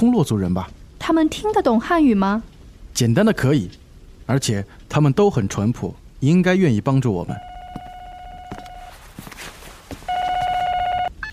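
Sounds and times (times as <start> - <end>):
speech: 0.0 - 7.5
telephone ringing: 7.3 - 9.0, 10.1 - 11.3.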